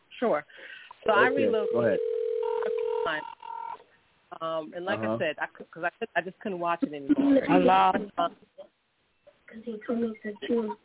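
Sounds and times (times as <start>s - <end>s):
speech: 0.2s - 2.2s, 3.1s - 3.4s, 4.3s - 8.8s, 9.5s - 10.8s
telephone dialing and ringing tones over a thin phone line: 1.1s - 3.8s.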